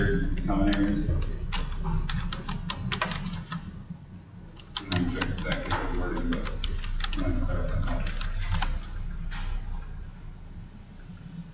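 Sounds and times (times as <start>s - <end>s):
low steady murmur: 0.0s - 11.5s
speech: 0.5s - 1.4s
typing on a computer keyboard: 0.6s - 3.7s, 4.5s - 9.0s.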